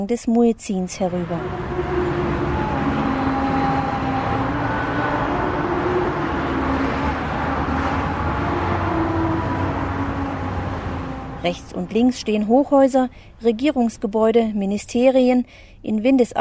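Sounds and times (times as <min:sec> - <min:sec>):
speech: 0:00.0 - 0:02.0, 0:11.4 - 0:16.3
dense car traffic in the new centre of Astana, Kazakhstan: 0:00.4 - 0:15.3.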